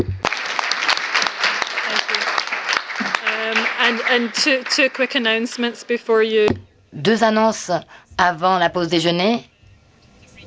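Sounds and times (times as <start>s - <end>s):
audience applause: 0.0s - 5.8s
speech: 3.8s - 9.5s.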